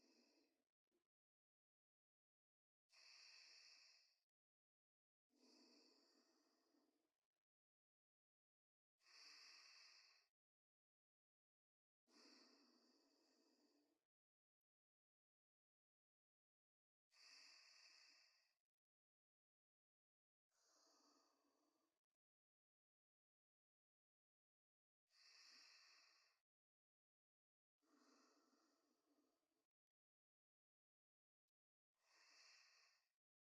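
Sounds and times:
person breathing in sleep: 0.0 - 0.5, 2.9 - 4.2, 5.4 - 6.8, 9.0 - 10.3, 12.1 - 13.8, 17.1 - 18.6, 20.5 - 21.7, 25.2 - 26.4, 27.8 - 29.1, 32.0 - 33.1.

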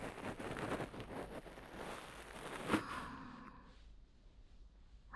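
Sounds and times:
ear cleaning after a bath: 0.0 - 2.9.

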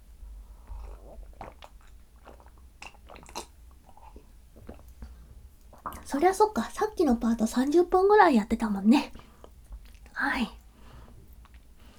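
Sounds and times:
sipping cold black tea and swallowing: 0.6 - 6.1
speech: 6.1 - 9.2.

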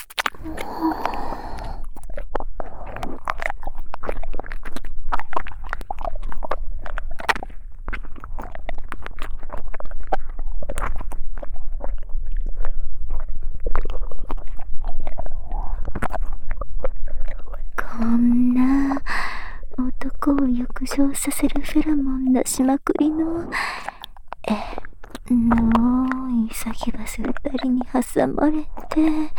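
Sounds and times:
wet ear-licking sounds: 0.0 - 29.3
soft breaths: 0.3 - 3.3, 17.8 - 29.3
short low voiced hum: 0.4 - 1.9, 17.1 - 29.3
speech: 21.2 - 23.8, 26.8 - 29.3.

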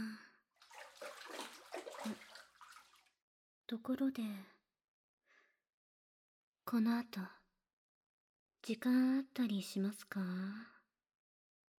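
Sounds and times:
water splashing as someone rinses their body off in a bath: 0.6 - 3.1
speech: 3.7 - 4.6, 6.7 - 7.4, 8.6 - 10.8.

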